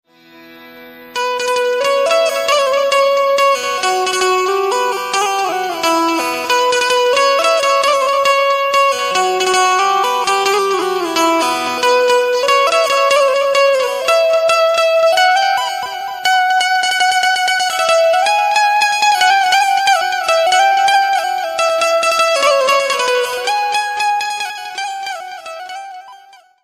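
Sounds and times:
Gujarati ringtone: 1.2s - 26.6s.

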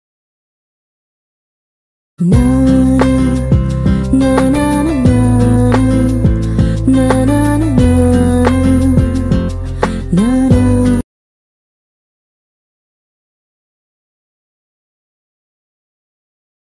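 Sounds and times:
Telugu ringtone background music: 2.4s - 11.0s.

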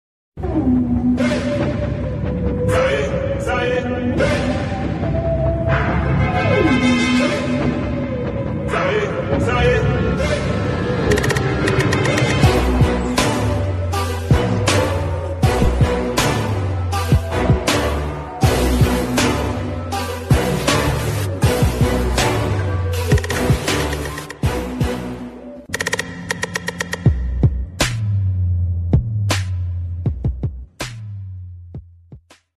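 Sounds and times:
villain attitude background music ringtone: 0.4s - 31.3s.

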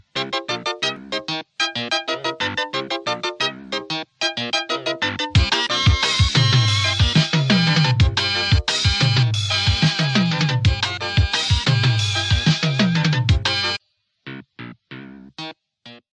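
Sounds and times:
film background music ringtone: 0.2s - 13.8s.

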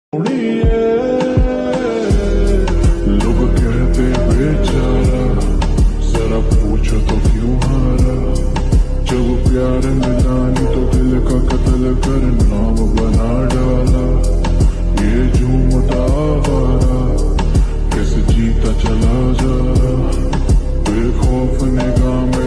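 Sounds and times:
lofi music: 0.1s - 22.4s.

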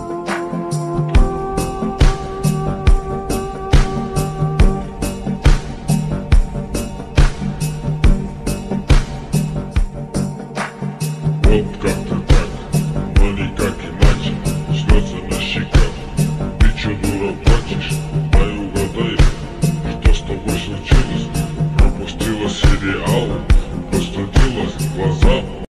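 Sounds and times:
slowed reverb villain beat: 0.4s - 25.7s.

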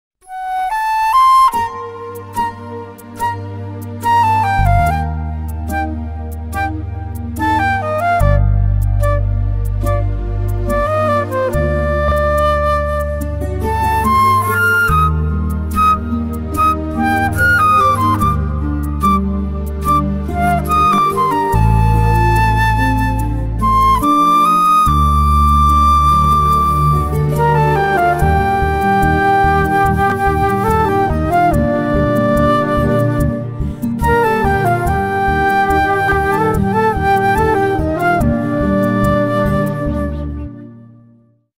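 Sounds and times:
flute version of Tamil love background music: 0.2s - 41.5s.

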